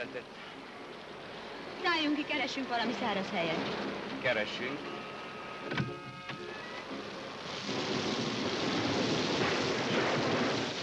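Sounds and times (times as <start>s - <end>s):
speech: 0.0s - 0.6s, 1.8s - 5.0s, 5.6s - 6.0s
rain: 0.0s - 5.7s, 6.3s - 10.8s
thunder: 7.5s - 10.8s.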